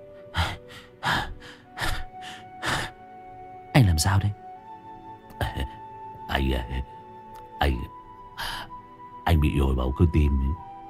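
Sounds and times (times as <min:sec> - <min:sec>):
heavy panting, out of breath: 0:00.1 - 0:03.0
speech: 0:04.0 - 0:04.4, 0:06.4 - 0:06.9, 0:09.4 - 0:10.7.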